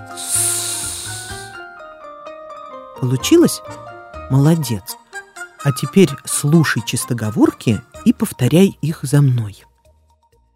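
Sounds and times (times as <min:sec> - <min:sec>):
voice holding a sustained hissing s sound: 0:00.0 - 0:01.6
speech: 0:03.0 - 0:05.0, 0:05.6 - 0:09.7.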